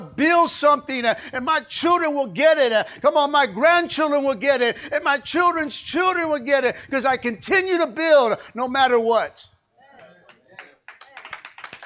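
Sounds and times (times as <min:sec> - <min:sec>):
speech: 0:00.2 - 0:09.5
small clap: 0:10.0 - 0:11.8.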